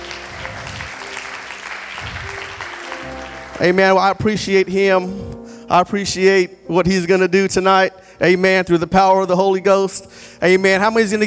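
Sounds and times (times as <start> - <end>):
audience applause for a guest at a church service: 0.0 - 3.8
speech: 3.6 - 11.2.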